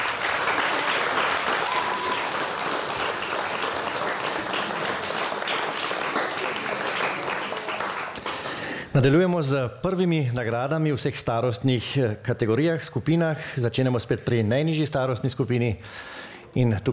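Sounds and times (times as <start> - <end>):
audience applause: 0.0 - 8.8
speech: 9.0 - 16.9.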